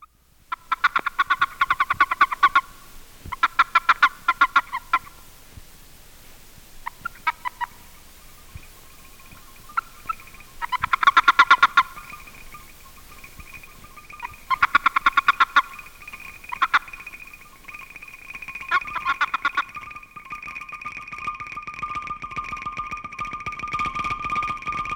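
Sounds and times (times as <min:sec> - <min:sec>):
faint tonal peeps: 0:00.0 - 0:24.8
Boreal toad Bufo boreas warning chirps: 0:00.5 - 0:05.4, 0:06.1 - 0:21.0.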